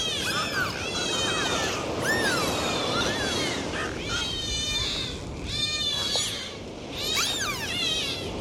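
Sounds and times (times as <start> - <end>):
dolphin whistles: 0.0 - 8.3.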